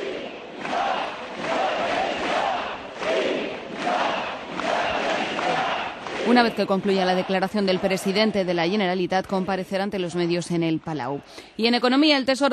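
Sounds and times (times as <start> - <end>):
crowd shouting pro-independence chants: 0.0 - 9.6
speech: 6.3 - 12.5.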